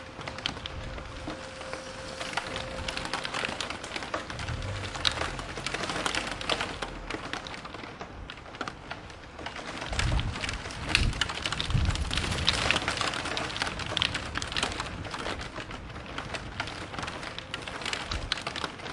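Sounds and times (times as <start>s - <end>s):
sirens: 0.0s - 7.6s
thunder: 0.0s - 8.8s, 9.4s - 18.7s
rain in a city: 0.0s - 18.9s.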